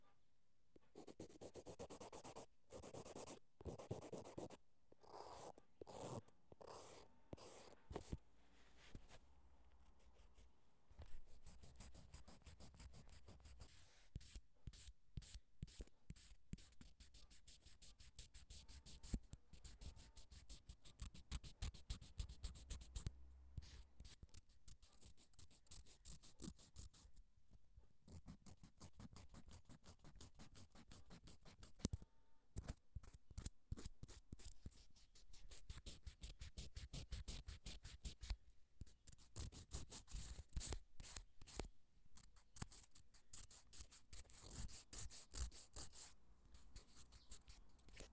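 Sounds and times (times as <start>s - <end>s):
nail file filing: 1.0s - 7.8s, 11.4s - 13.6s, 14.2s - 27.1s, 28.1s - 32.0s, 32.6s - 38.4s, 39.1s - 46.2s, 46.8s - 48.1s.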